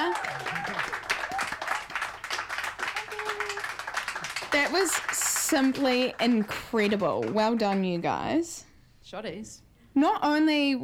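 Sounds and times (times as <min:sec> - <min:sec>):
scattered cheers: 0:00.0 - 0:01.9, 0:02.8 - 0:03.9
audience applause: 0:00.0 - 0:07.8
speech: 0:04.5 - 0:10.8.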